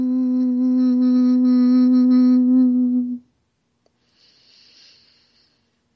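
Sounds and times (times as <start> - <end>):
person chanting a hum on the out-breath: 0.0 - 3.3.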